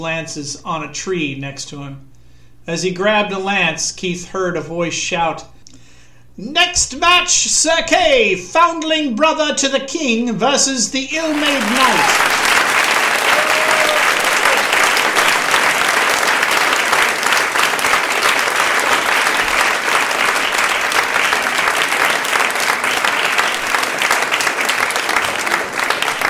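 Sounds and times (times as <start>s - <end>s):
speech: 0.0s - 5.5s, 6.4s - 12.4s
smattering of crowd applause: 11.2s - 26.2s.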